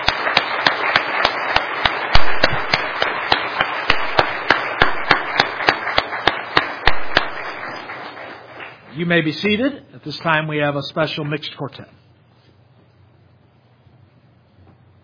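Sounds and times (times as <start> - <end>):
audience applause: 0.0 - 8.9
speech: 9.0 - 12.0.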